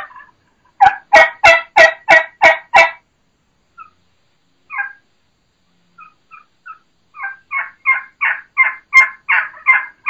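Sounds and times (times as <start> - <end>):
wild turkey plain yelp: 0.0 - 3.0, 3.8 - 4.0, 4.7 - 5.1, 6.0 - 10.0.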